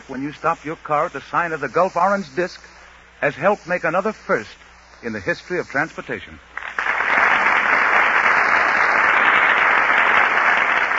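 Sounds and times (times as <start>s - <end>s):
speech: 0.1s - 6.5s
large studio audience applause: 6.5s - 10.9s.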